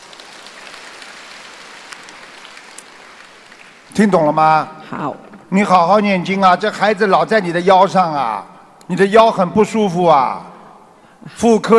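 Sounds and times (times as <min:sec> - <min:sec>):
audience applause: 0:00.0 - 0:04.4
speech: 0:03.9 - 0:10.5, 0:11.2 - 0:11.7.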